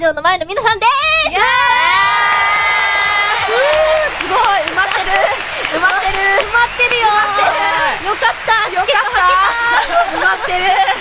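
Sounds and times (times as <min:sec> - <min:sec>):
speech: 0:00.0 - 0:01.6, 0:08.0 - 0:10.9
large live audience cheering at a concert: 0:01.3 - 0:10.9
laughter: 0:03.5 - 0:10.9.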